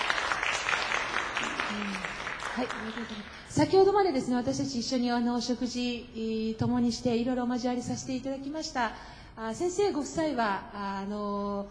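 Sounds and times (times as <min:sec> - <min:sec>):
audience applause welcoming guests: 0:00.0 - 0:03.5
speech: 0:02.6 - 0:11.6.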